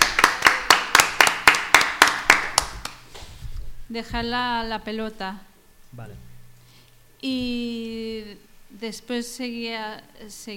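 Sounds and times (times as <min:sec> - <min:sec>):
applause: 0:00.0 - 0:03.0
speech: 0:03.9 - 0:06.3, 0:07.2 - 0:10.5.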